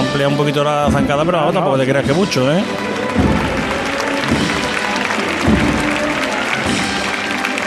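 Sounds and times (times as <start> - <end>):
speech: 0.2 - 3.3
crowd applause: 1.1 - 7.6.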